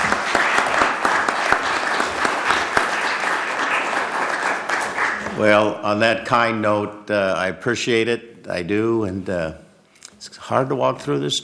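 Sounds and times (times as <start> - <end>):
courtroom audience applauding: 0.0 - 5.7
speech: 5.4 - 9.6, 10.2 - 11.4.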